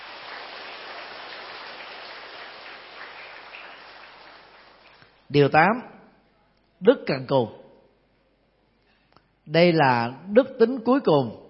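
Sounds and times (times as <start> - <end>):
audience applause: 0.0 - 5.2
speech: 5.3 - 5.9, 6.8 - 7.6, 9.5 - 11.4.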